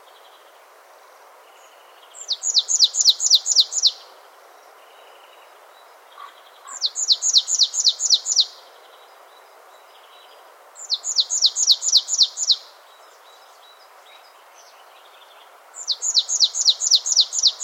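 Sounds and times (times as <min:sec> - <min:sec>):
Poecile palustris marsh tit calling: 0:02.2 - 0:04.0, 0:06.2 - 0:08.5, 0:10.8 - 0:12.6, 0:15.8 - 0:17.6.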